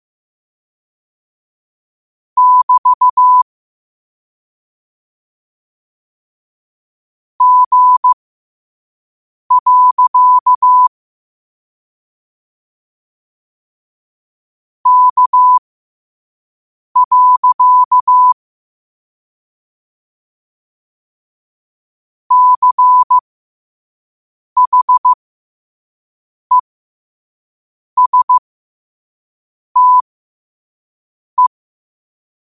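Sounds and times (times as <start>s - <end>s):
morse code at 5 wpm: 2.4s - 3.4s, 7.4s - 8.2s, 9.5s - 10.9s, 14.9s - 15.6s, 17.0s - 18.4s, 22.3s - 23.2s, 24.6s - 25.2s, 28.0s - 28.4s, 29.8s - 30.0s.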